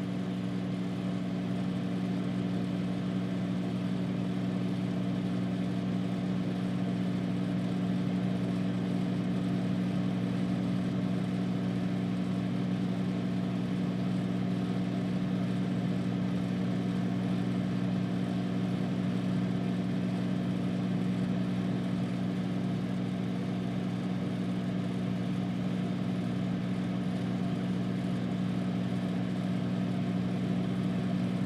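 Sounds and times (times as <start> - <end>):
household microwave running: 0.0 - 31.4.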